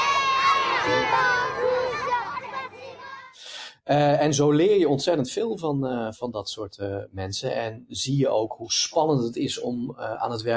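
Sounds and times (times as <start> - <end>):
crowd of children cheering and shouting: 0.0 - 3.4
speech: 3.9 - 10.5.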